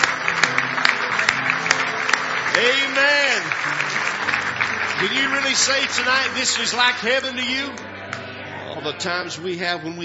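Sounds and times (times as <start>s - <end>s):
audience clapping: 0.0s - 8.4s
speech: 2.6s - 3.7s, 5.0s - 7.9s, 8.8s - 10.0s.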